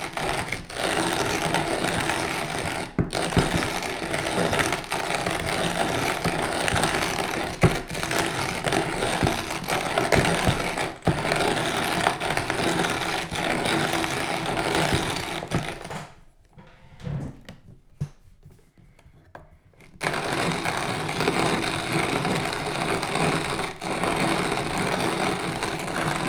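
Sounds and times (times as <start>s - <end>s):
laborious grinding with a manual coffee grinder: 0.0s - 16.2s, 19.8s - 26.2s.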